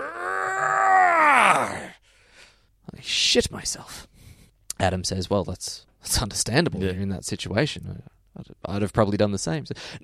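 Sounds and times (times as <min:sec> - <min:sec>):
person imitating a beast's frightful roar: 0:00.0 - 0:02.0
speech: 0:03.3 - 0:04.1, 0:04.8 - 0:10.0.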